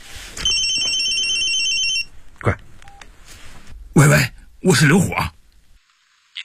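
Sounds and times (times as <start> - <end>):
telephone ringing with a high electronic tone: 0.4 - 2.1
speech: 2.4 - 2.6, 4.0 - 5.4.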